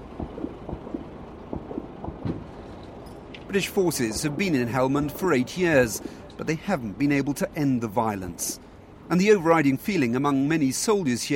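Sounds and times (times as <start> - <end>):
steady rumble: 0.0 - 11.3
distant gunfire: 0.2 - 2.5
speech: 3.5 - 11.3.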